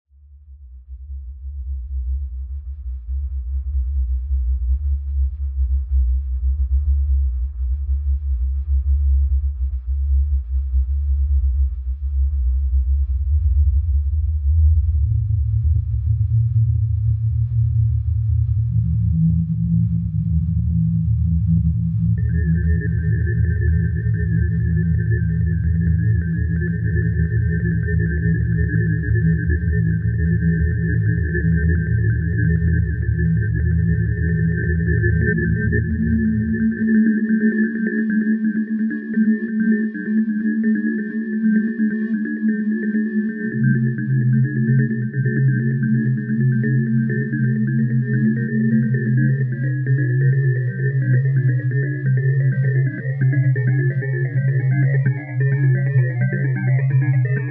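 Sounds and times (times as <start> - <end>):
ambience: 0.8 - 57.4.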